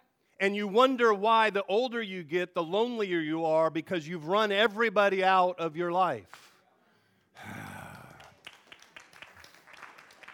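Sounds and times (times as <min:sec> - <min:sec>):
speech: 0:00.4 - 0:06.5
crowd applauding: 0:07.5 - 0:10.3.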